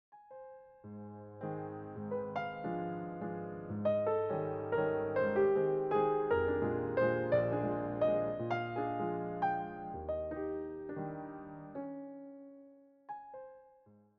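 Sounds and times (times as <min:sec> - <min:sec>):
piano waltz: 0:00.2 - 0:14.1.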